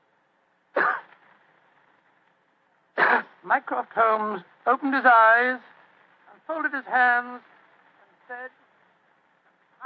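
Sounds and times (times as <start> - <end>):
discreet cough like throat clearing: 0.8 - 1.1, 3.0 - 3.4
speech: 3.4 - 5.7, 6.5 - 7.5, 8.3 - 8.6.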